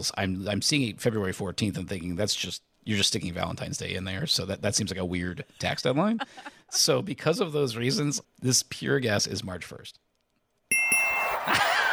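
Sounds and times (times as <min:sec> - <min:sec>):
speech: 0:00.0 - 0:10.0
quiz buzzer bell pushed: 0:10.7 - 0:11.9
laughter: 0:11.3 - 0:11.9.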